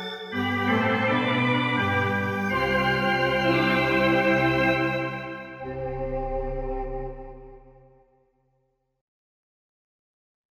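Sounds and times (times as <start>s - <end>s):
Korg MSC-1S voice organ: 0.0s - 7.9s.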